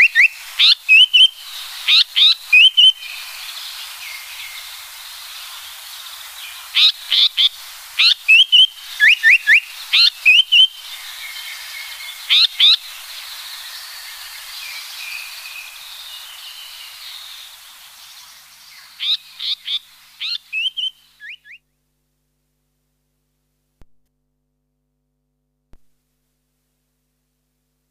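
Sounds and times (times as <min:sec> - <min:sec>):
Japanese paradise flycatcher singing: 0:00.0 - 0:21.6
soft hiss: 0:00.0 - 0:24.2, 0:25.7 - 0:27.8.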